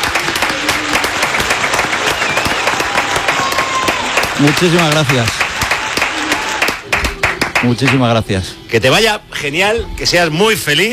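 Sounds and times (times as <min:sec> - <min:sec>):
applause in the radio studio: 0:00.0 - 0:08.2
speech: 0:04.4 - 0:05.4, 0:07.6 - 0:10.9.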